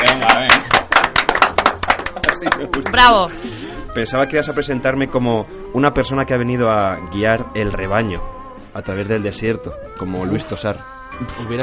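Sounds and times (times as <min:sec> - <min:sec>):
audience applause: 0:00.0 - 0:03.0
speech: 0:02.4 - 0:11.6.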